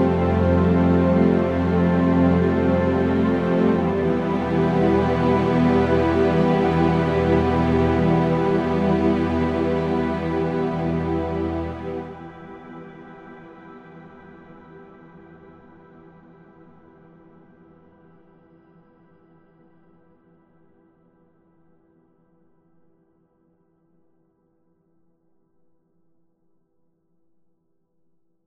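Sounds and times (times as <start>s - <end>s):
orchestral music bed: 0.0s - 12.7s.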